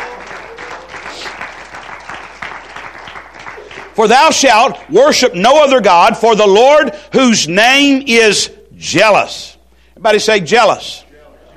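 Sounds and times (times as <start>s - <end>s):
audience clapping hands in praise: 0.0s - 5.0s
speech: 4.0s - 11.0s.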